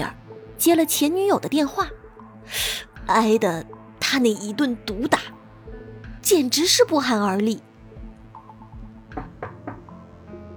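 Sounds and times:
speech: 0.0s - 5.4s, 6.2s - 7.7s
knocking on a door: 8.8s - 10.1s.

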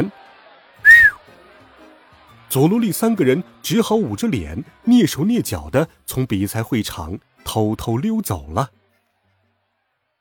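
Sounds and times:
crowd whistling in disapproval: 0.8s - 1.2s
speech: 2.5s - 8.8s.

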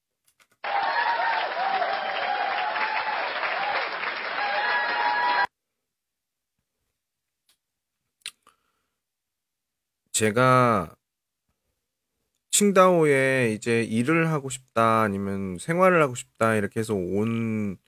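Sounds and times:
audience applause: 0.6s - 5.5s
speech: 10.2s - 11.0s, 12.6s - 17.8s.

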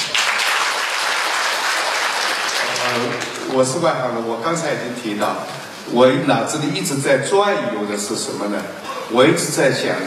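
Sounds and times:
audience applause: 0.0s - 3.7s
speech: 2.9s - 10.0s.

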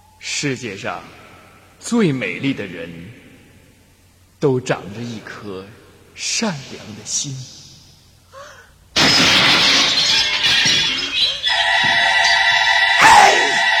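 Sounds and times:
speech: 0.4s - 1.2s, 1.8s - 3.2s, 4.4s - 7.6s
magic mirror smashed to pieces by the queen: 9.0s - 13.7s.

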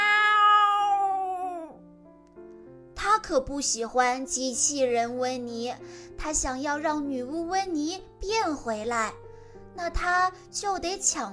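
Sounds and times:
cat meowing: 0.0s - 1.8s
speech: 3.2s - 9.2s, 9.8s - 11.3s.

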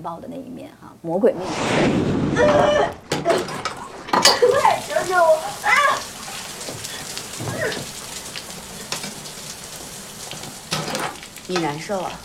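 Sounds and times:
speech: 0.0s - 3.6s, 11.5s - 12.2s
shower head spraying water: 3.7s - 12.2s.

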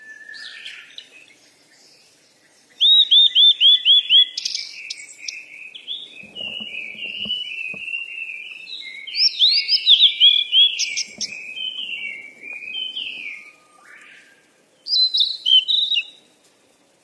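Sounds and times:
bird singing: 0.0s - 16.3s
faint low rustling: 5.9s - 8.1s, 10.7s - 13.6s.

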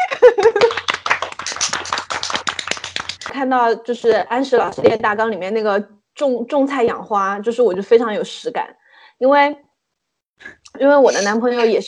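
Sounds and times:
laughter: 0.0s - 0.9s
applause: 0.2s - 3.3s
speech: 3.4s - 9.7s, 10.4s - 11.8s.

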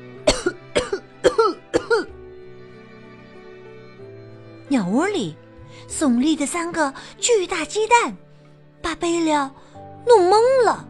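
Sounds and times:
person coughing from choking on dust: 0.3s - 2.1s
speech: 4.7s - 8.2s, 8.9s - 10.8s.

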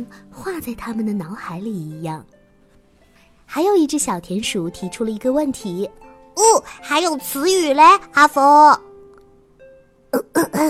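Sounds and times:
speech: 0.0s - 2.4s, 3.5s - 8.9s, 10.1s - 10.6s
throat clearing: 10.1s - 10.6s.

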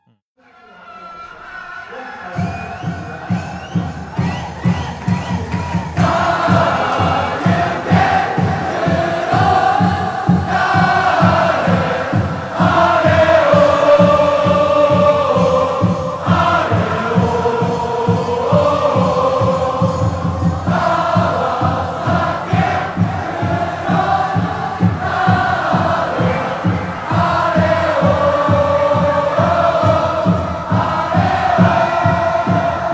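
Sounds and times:
football fans singing club anthem in stadium: 0.5s - 32.9s.

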